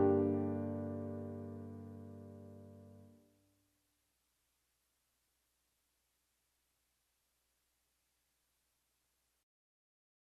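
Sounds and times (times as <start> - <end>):
piano accompaniment in G minor high: 0.0 - 3.1.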